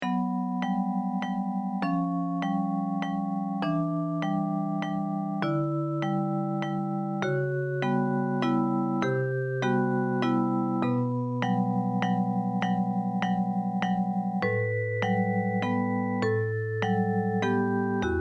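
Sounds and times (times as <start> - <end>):
simple waltz: 0.0 - 18.2.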